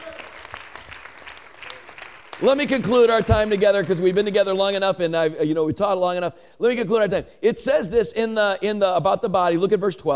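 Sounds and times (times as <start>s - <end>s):
audience clapping hands: 0.0s - 4.8s
speech: 2.4s - 10.1s.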